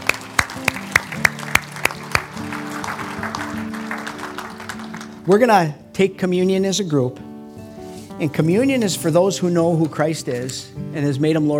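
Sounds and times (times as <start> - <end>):
audience clapping: 0.0 - 5.4
speech: 5.3 - 7.2, 8.2 - 11.5.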